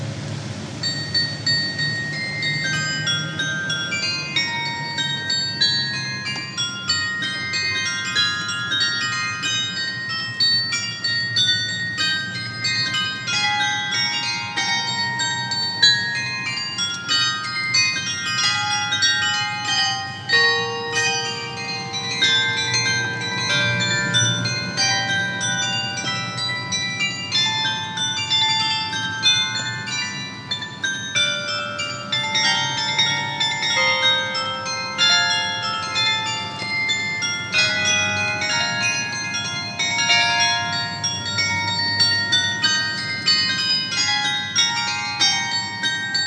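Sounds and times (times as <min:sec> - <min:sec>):
carillon bells: 0:00.2 - 0:46.2.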